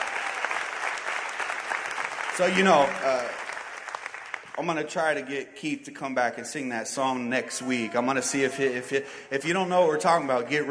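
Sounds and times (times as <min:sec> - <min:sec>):
audience applause: 0:00.0 - 0:04.7
speech: 0:02.4 - 0:03.4, 0:04.6 - 0:10.6.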